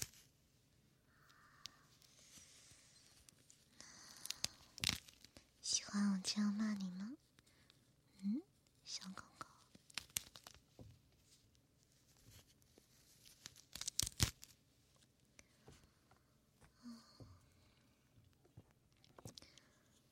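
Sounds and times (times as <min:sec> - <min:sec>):
soft breathy whispers: 0:01.0 - 0:04.9, 0:05.6 - 0:09.8, 0:15.4 - 0:18.2, 0:19.1 - 0:20.1
speech: 0:06.0 - 0:07.2
nylon stockings being torn: 0:09.8 - 0:10.6, 0:13.2 - 0:14.6.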